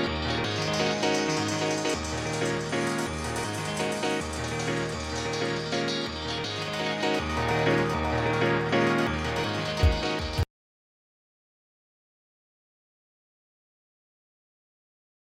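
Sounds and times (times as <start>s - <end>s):
rave piano music: 0.0s - 10.5s.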